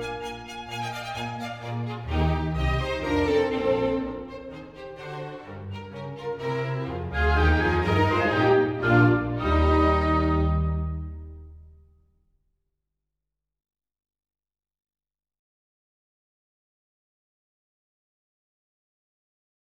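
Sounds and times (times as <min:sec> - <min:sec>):
minuet in E flat: 0:00.0 - 0:11.6.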